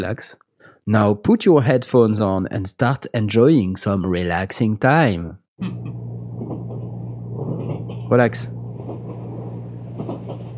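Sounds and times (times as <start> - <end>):
speech: 0.0 - 6.1, 8.1 - 8.6
train ambience from relaxation app: 6.1 - 10.5.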